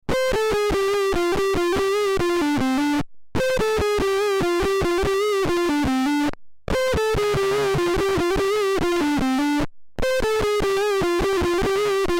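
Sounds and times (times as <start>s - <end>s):
Swarm Fuzz Pedal Worker fuzz guitar: 0.1s - 12.1s.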